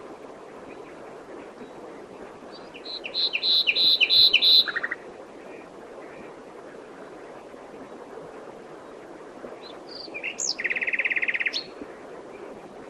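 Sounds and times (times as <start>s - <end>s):
common nightingale Luscinia megarhynchos singing: 2.5s - 5.1s, 9.6s - 11.8s.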